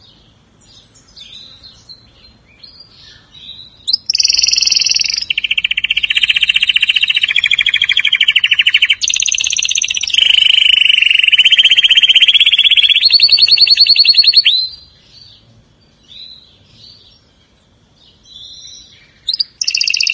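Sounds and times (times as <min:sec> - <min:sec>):
canary song with rolled trills: 0:00.0 - 0:20.1.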